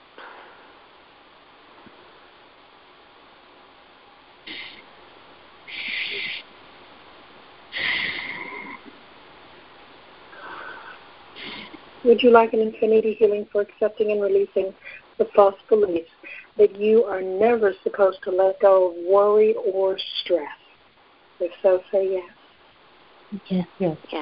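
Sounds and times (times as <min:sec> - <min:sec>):
quiet hiss: 0:00.0 - 0:24.2
slow deep breaths during a guided healing session: 0:00.1 - 0:00.9, 0:05.7 - 0:06.5, 0:07.7 - 0:09.0, 0:10.3 - 0:11.9, 0:14.8 - 0:15.2, 0:16.2 - 0:16.6
speech: 0:12.0 - 0:20.6, 0:21.4 - 0:22.4, 0:23.3 - 0:24.2.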